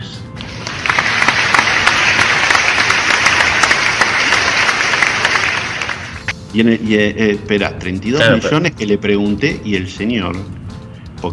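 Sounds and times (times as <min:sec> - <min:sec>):
applause sound effect: 0:00.4 - 0:06.3
speech: 0:06.5 - 0:10.6.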